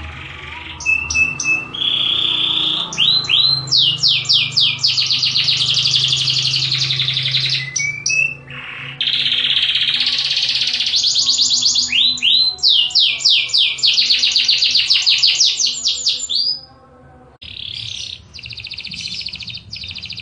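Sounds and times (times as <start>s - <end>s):
Atlantic canary singing: 0.0s - 20.1s.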